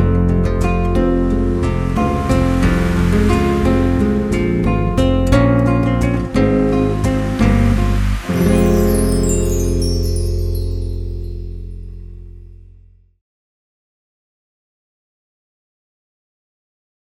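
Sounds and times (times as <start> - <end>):
beautiful melody: 0.2 - 12.6
nature sounds: 1.2 - 11.9.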